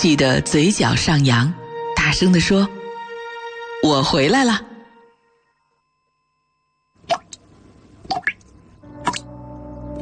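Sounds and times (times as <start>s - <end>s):
speech: 0.0s - 2.8s, 3.8s - 4.7s
faint steady hum: 4.1s - 10.0s
water dripping from a faucet: 7.0s - 9.3s.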